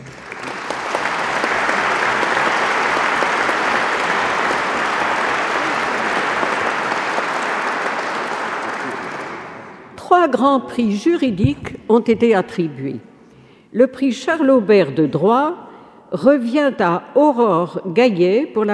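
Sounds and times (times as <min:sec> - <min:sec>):
audience applause: 0:00.0 - 0:09.8
speech: 0:10.2 - 0:13.1, 0:13.7 - 0:18.7.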